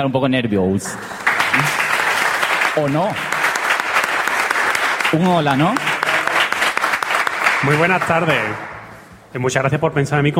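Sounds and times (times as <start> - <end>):
speech: 0.0 - 1.8, 2.8 - 3.4, 5.1 - 5.9, 7.6 - 8.7, 9.3 - 10.3
audience applause: 0.9 - 8.8.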